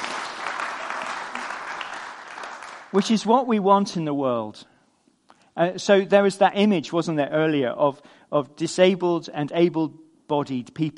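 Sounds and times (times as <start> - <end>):
audience applause during a talk: 0.0 - 3.1
speech: 2.9 - 4.7, 5.6 - 10.9.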